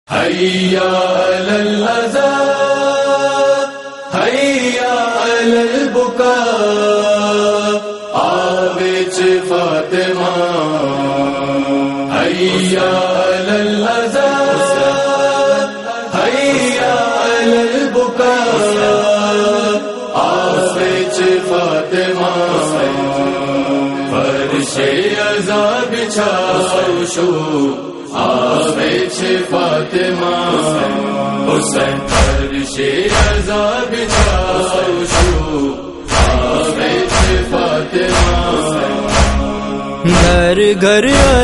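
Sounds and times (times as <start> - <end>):
Gujarati noha chant: 0.1 - 41.4.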